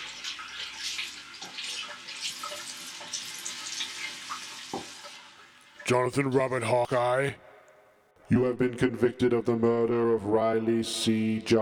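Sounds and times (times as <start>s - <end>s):
running water from a tap, washing blood off a body: 0.0s - 6.0s
speech: 5.9s - 7.5s, 8.3s - 11.6s.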